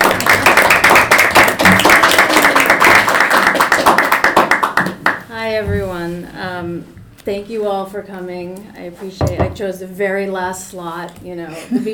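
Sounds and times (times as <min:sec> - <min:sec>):
audience applause welcoming a speaker to an academic talk: 0:00.0 - 0:05.3
speech: 0:05.5 - 0:11.9.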